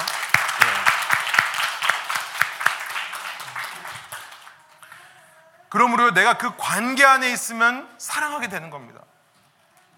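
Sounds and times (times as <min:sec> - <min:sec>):
audience applause: 0:00.0 - 0:04.7
speech: 0:05.7 - 0:09.2.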